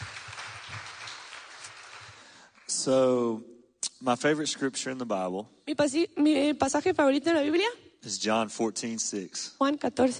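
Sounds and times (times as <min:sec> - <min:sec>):
applause: 0:00.0 - 0:02.9
speech: 0:02.8 - 0:10.1.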